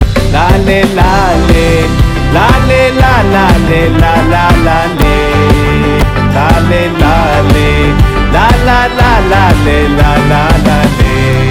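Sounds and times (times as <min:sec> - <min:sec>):
person humming: 0:00.8 - 0:11.4.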